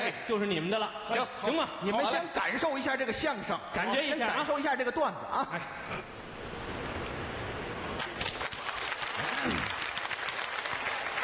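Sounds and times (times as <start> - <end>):
speech: 0.1 - 6.2
audience applause at a Chinese crosstalk comedy show: 6.8 - 11.2.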